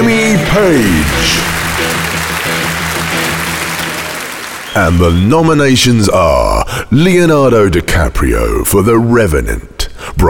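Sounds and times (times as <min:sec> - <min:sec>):
audience applause at a classic rock awards ceremony at London's Roundhouse: 0:00.4 - 0:05.2
speech: 0:00.5 - 0:01.9, 0:04.8 - 0:10.2.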